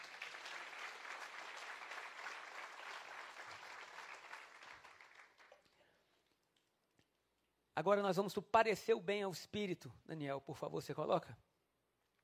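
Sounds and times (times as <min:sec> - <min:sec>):
crowd applauding: 0:00.0 - 0:05.8
speech: 0:07.8 - 0:11.5.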